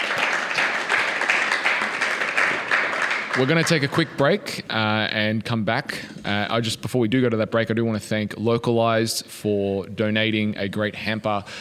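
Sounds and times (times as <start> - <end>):
audience applause: 0.0 - 4.4
speech: 3.4 - 11.5.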